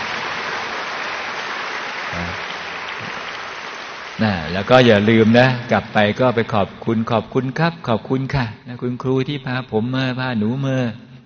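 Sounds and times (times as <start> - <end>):
students applauding: 0.0 - 5.6
speech: 4.2 - 11.0.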